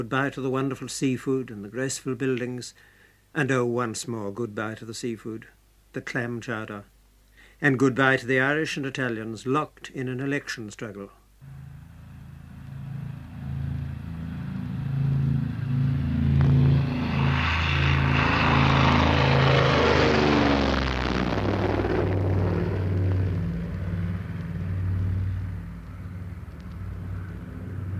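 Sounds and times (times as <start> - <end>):
speech: 0.0 - 6.9, 7.6 - 11.6
propeller airplane taking off: 11.4 - 27.9.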